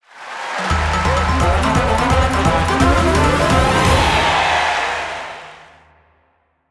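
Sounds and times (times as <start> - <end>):
kabuki-style dance music: 0.6 - 4.6.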